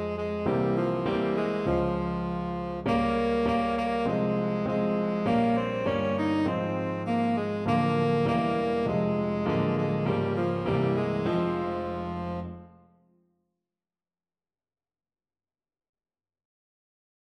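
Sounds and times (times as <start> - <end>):
tenor saxophone: 0.0 - 12.9.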